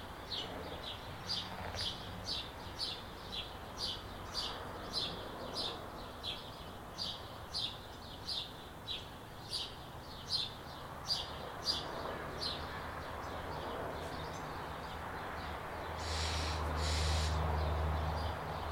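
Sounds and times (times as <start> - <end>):
bird chirping in a backyard: 0.3 - 18.7
louder passing noise with a deeper hum: 16.0 - 17.9.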